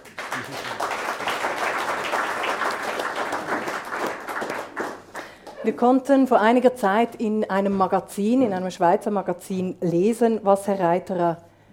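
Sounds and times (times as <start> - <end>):
audience applause: 0.0 - 5.6
speech: 0.4 - 0.9, 5.6 - 11.5.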